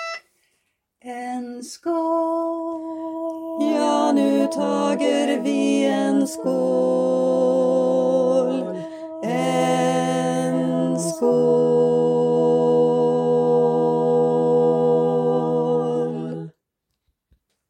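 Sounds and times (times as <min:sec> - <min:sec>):
baritone voice: 0:01.0 - 0:16.5.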